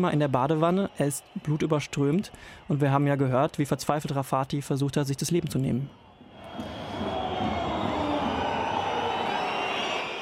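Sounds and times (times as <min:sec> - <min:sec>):
stadium crowd whistling: 0:00.0 - 0:03.2, 0:05.5 - 0:10.1
speech: 0:00.0 - 0:06.0.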